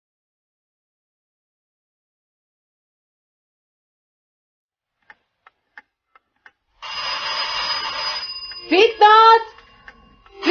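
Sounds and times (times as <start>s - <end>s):
doorbell ringing: 6.8s - 10.4s.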